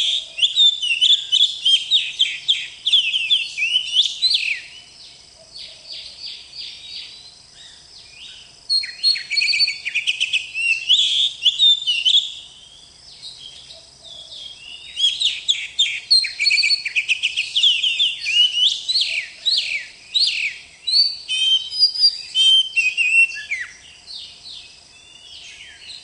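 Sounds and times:
Oriental magpie-robin singing: 0:00.0 - 0:04.8, 0:08.3 - 0:12.5, 0:13.4 - 0:23.8.

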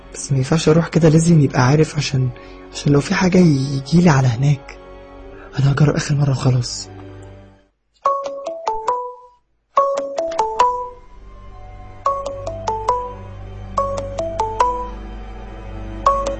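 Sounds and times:
speech: 0:00.1 - 0:04.8, 0:05.6 - 0:06.9
short melodic electronic phone ringtone: 0:08.1 - 0:11.0, 0:12.0 - 0:15.0, 0:16.1 - 0:16.3.

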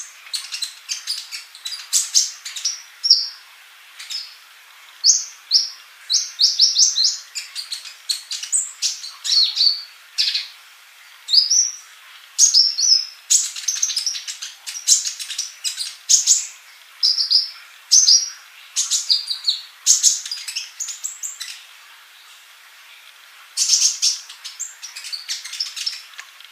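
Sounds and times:
bird chirping song: 0:00.0 - 0:03.4, 0:04.0 - 0:10.6, 0:11.2 - 0:22.4, 0:23.6 - 0:26.2.

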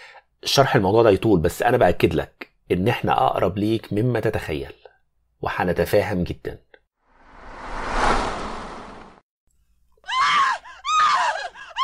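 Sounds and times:
speech: 0:00.5 - 0:04.8, 0:05.4 - 0:06.6
woman screaming outside in a radio drama: 0:10.0 - 0:11.8.

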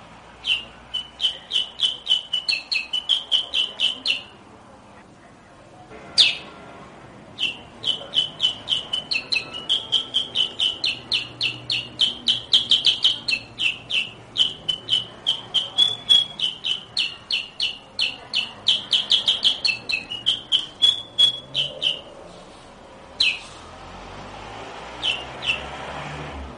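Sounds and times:
sooty-headed bulbul chirping rapidly: 0:00.3 - 0:04.4, 0:06.1 - 0:06.6, 0:07.3 - 0:22.2, 0:23.2 - 0:23.6, 0:25.0 - 0:25.7.

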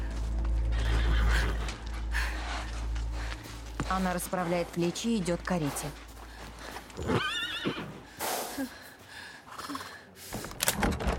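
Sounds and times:
hooves halting: 0:00.0 - 0:09.8
horses neighing: 0:00.7 - 0:02.8, 0:06.9 - 0:08.1
speech: 0:03.9 - 0:06.0.

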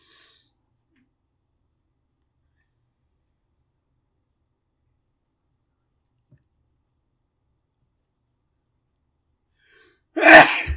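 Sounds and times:
sneeze: 0:10.2 - 0:10.7.

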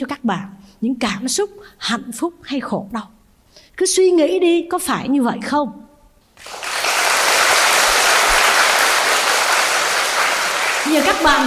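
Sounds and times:
speech: 0:00.0 - 0:03.2, 0:03.8 - 0:06.6, 0:10.9 - 0:11.4
audience clapping during a Buddhist nun's dharma talk: 0:06.4 - 0:11.4.

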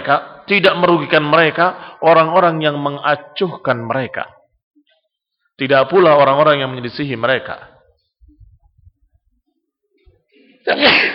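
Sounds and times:
speech: 0:00.0 - 0:04.4, 0:05.6 - 0:07.7, 0:10.6 - 0:11.1
person sneezing: 0:10.7 - 0:11.1.

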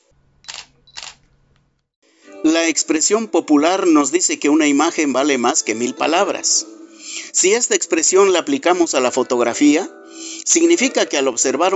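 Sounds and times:
camera shutter click: 0:00.4 - 0:01.3
speech: 0:02.4 - 0:06.8, 0:07.4 - 0:11.7.

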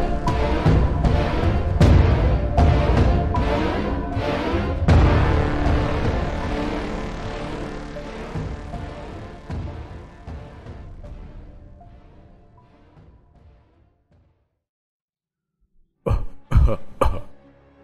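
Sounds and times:
dense rumbling sound: 0:00.0 - 0:12.6
thick phlegmy coughs: 0:16.1 - 0:17.4.

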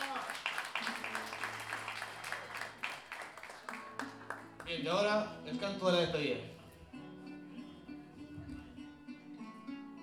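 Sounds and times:
audience applause: 0:00.0 - 0:04.7
speech: 0:04.7 - 0:06.6.

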